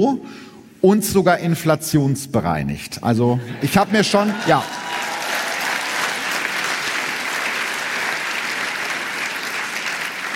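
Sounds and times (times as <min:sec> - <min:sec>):
speech: 0:00.0 - 0:04.9
audience applause: 0:04.0 - 0:10.3.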